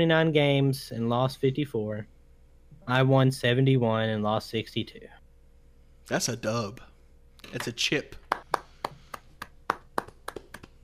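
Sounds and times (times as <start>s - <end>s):
speech: 0.0s - 2.1s, 2.9s - 5.2s, 6.1s - 8.2s
hands clapping: 7.4s - 10.8s.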